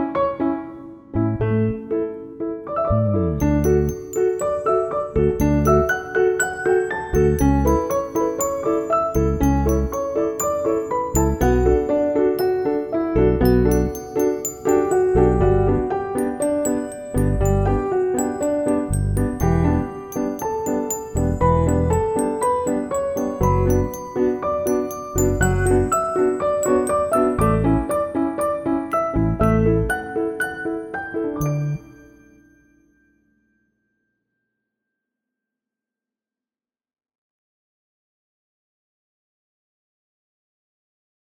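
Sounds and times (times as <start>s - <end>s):
upright piano: 0.0s - 32.5s.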